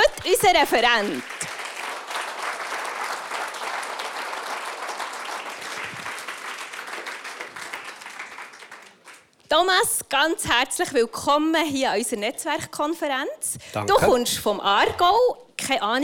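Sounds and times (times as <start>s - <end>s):
speech: 0.4s - 1.4s, 9.5s - 16.0s
audience applause: 0.4s - 9.3s.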